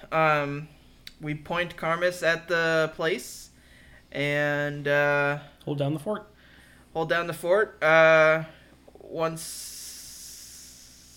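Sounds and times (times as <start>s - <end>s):
speech: 0.1s - 3.5s, 4.1s - 6.3s, 6.9s - 9.8s
man's voice stretching a long hissing s: 9.4s - 11.1s.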